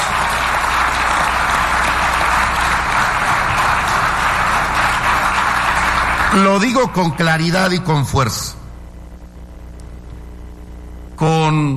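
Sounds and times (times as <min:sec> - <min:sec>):
audience applause: 0:00.0 - 0:07.5
speech: 0:06.3 - 0:08.6, 0:11.2 - 0:11.7.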